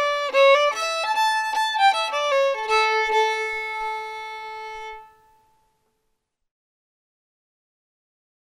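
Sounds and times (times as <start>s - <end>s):
fiddle: 0.0s - 5.7s.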